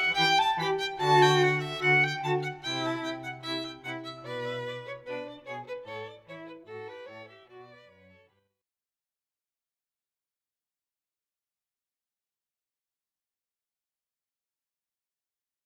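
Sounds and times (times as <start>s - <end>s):
string quartet playing a balletto: 0.0s - 8.1s.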